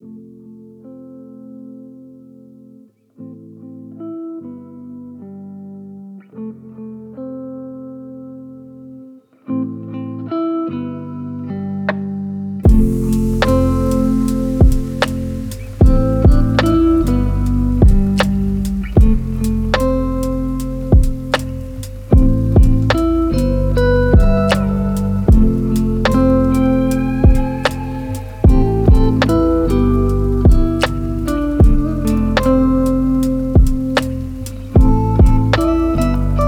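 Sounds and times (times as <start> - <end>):
lofi hip hop: 11.9 - 36.4.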